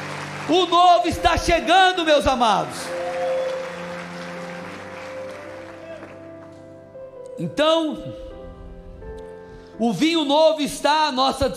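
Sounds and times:
audience applause: 0:00.0 - 0:06.5
speech: 0:00.5 - 0:03.2, 0:07.4 - 0:08.3, 0:09.8 - 0:11.5.

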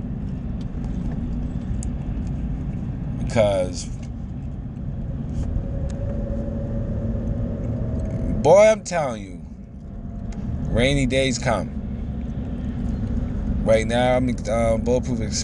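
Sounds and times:
road traffic passing by an airport: 0:00.0 - 0:15.4
speech: 0:03.3 - 0:04.0, 0:08.4 - 0:09.4, 0:10.8 - 0:11.8, 0:13.6 - 0:15.4
faint high whine: 0:04.8 - 0:15.4.

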